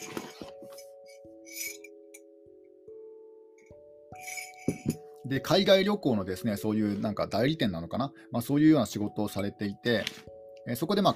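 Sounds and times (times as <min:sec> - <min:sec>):
glass clinking while someone takes a drink: 0:00.0 - 0:02.2, 0:04.2 - 0:05.2
speech: 0:05.3 - 0:11.1.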